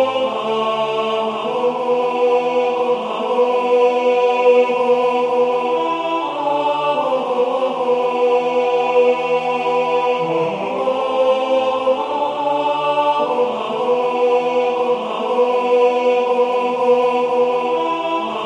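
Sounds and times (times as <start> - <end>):
tenor voice singing: 0.0 - 18.4.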